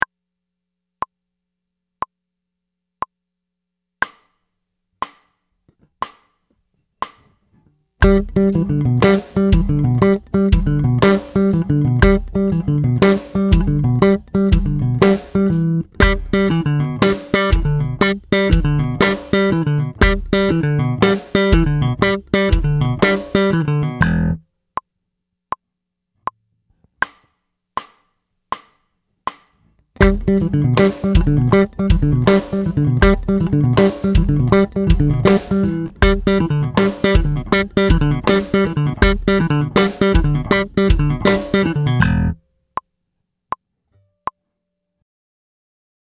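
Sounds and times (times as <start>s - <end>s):
musical lick: 8.0s - 24.4s, 30.0s - 42.4s.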